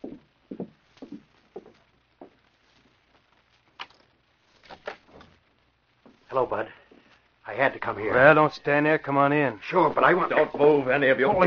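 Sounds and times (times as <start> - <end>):
soft footsteps: 0.0 - 7.7
speech: 6.4 - 6.8, 7.5 - 11.4.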